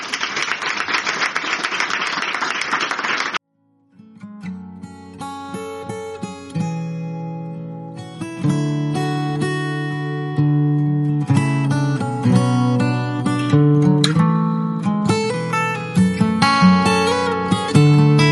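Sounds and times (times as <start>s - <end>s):
crowd clapping: 0.0s - 3.4s
gentle instrumental music with sustained tones: 3.6s - 18.3s.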